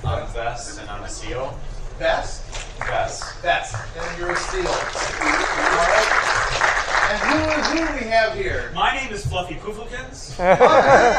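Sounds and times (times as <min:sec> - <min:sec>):
speech: 0:00.4 - 0:06.2, 0:07.1 - 0:11.1
studio audience applause for a game show player: 0:02.6 - 0:08.1
laughter: 0:05.0 - 0:07.9, 0:10.3 - 0:11.1.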